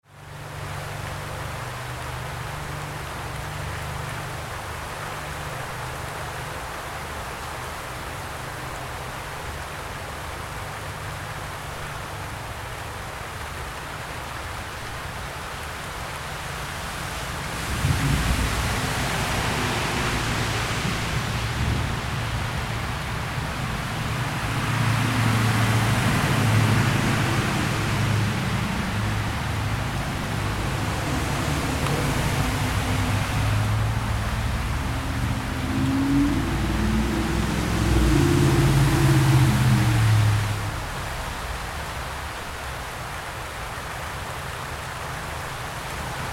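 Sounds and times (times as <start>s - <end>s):
light rain: 0.0s - 46.3s.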